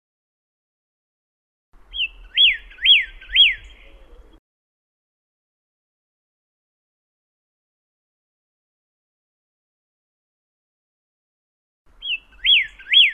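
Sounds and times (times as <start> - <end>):
pyrrhuloxia singing thin and slurred whistles: 1.9 - 4.4, 12.0 - 13.1.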